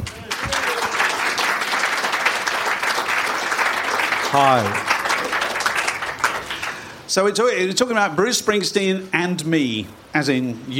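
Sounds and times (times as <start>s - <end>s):
audience clapping to welcome a journalist and author: 0.0s - 7.1s
speech: 4.3s - 4.9s, 7.1s - 10.7s.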